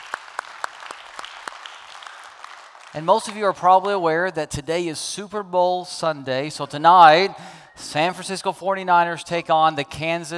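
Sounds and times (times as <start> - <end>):
scattered hand claps from a small church gathering: 0.0 - 4.0
speech: 2.9 - 10.3.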